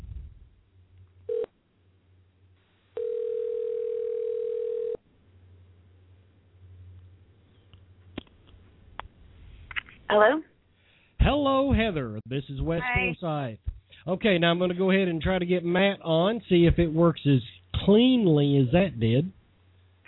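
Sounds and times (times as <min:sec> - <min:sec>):
telephone dial tone: 0:01.3 - 0:01.5, 0:03.0 - 0:05.0
phone line hum: 0:01.3 - 0:01.6, 0:02.9 - 0:05.0
speech: 0:10.1 - 0:10.5, 0:11.3 - 0:19.4.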